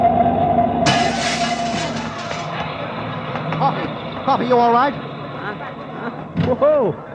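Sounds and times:
truck engine roaring: 0:00.0 - 0:07.1
speech: 0:04.3 - 0:07.1.

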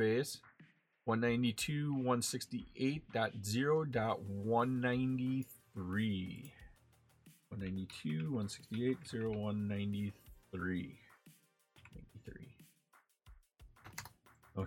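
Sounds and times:
speech: 0:00.0 - 0:06.6, 0:07.5 - 0:11.0, 0:11.9 - 0:12.7, 0:13.9 - 0:14.6
typing on a computer keyboard: 0:13.8 - 0:14.2.

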